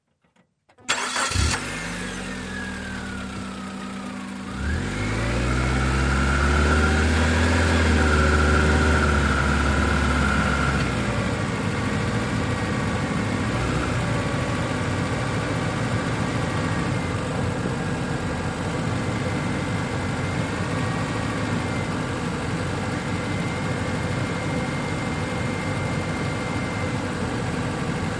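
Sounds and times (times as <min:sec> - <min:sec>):
small compact car engine accelerating: 0:00.9 - 0:28.0.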